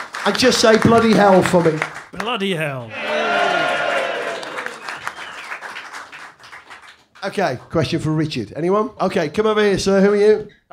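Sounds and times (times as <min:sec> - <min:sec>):
audience applause: 0:00.0 - 0:07.4
speech: 0:00.2 - 0:03.5, 0:07.2 - 0:10.7.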